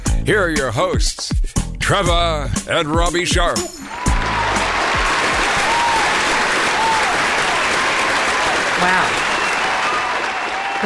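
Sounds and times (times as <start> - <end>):
speech: 0.3 - 4.5, 8.8 - 9.3
canned applause from a large crowd: 3.8 - 10.8
cheers and whoops: 3.8 - 10.8.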